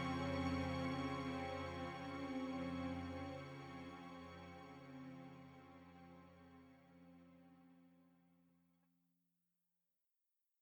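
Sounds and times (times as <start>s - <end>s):
string orchestra playing a prelude: 0.0s - 5.0s
piano: 0.0s - 5.8s.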